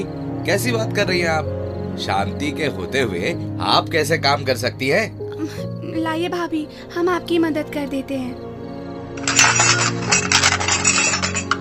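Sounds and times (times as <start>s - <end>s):
speech: 0.0s - 8.5s
metal utensil clattering to the floor: 9.2s - 11.5s.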